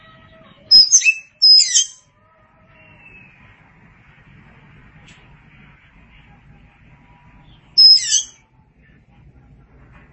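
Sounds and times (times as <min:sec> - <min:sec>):
Oriental magpie-robin song whistle and rasp: 0:00.7 - 0:02.0, 0:02.8 - 0:03.5, 0:07.5 - 0:08.4.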